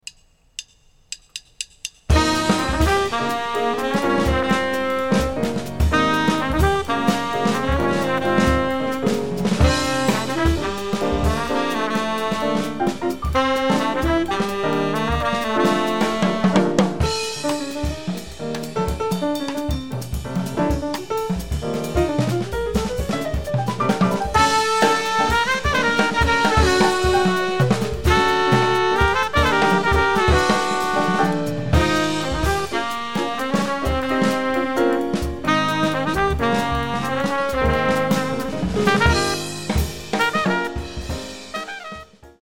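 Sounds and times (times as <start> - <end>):
music without bass: 0.6 - 42.2.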